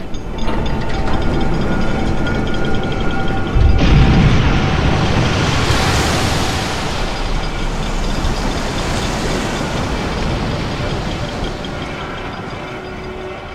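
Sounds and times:
heavy machinery of floating cranes hoisting a sunken submarine: 0:00.4 - 0:13.5
deep rumbling surge: 0:01.4 - 0:13.0.

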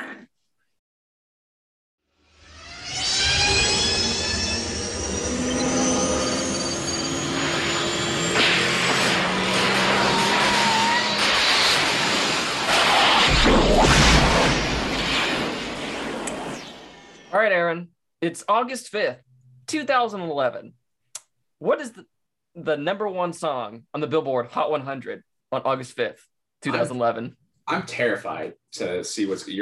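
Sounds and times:
time machine car departure mechanical roar with squealing tones: 0:02.2 - 0:17.3
speech: 0:17.5 - 0:20.8, 0:21.6 - 0:29.6.

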